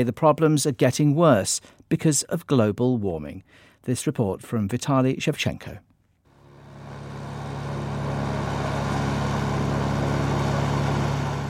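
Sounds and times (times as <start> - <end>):
speech: 0.0 - 5.9
Russian army helicopter flying low over the Siberian forest: 6.4 - 11.4.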